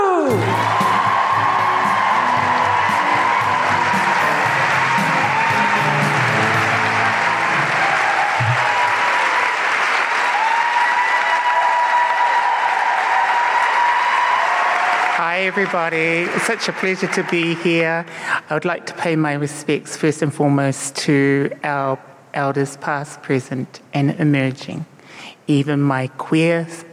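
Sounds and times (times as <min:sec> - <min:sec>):
whoops and cheers: 0:00.0 - 0:15.6
audience applause at a live comedy show in Melbourne: 0:00.1 - 0:17.8
speech: 0:15.6 - 0:26.9.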